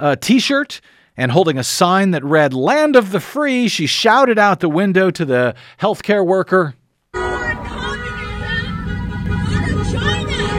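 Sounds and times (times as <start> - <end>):
speech: 0.0 - 6.8
car horns honking at a street protest: 7.2 - 10.5
traffic rumble: 7.2 - 10.5.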